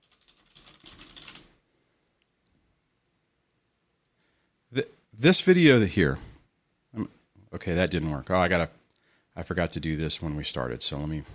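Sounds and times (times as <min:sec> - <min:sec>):
typing on a computer keyboard: 0:00.0 - 0:01.6
speech: 0:04.7 - 0:06.3, 0:07.0 - 0:08.8, 0:09.4 - 0:11.3.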